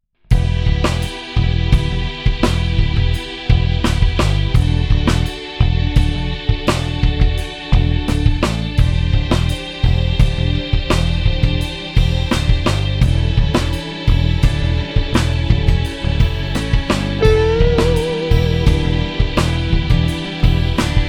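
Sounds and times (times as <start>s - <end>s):
solo mellotron loop: 0.3s - 21.0s.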